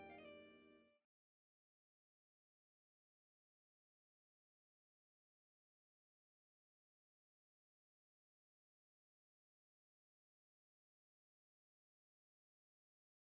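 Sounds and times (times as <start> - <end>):
fusion music: 0.0 - 0.8.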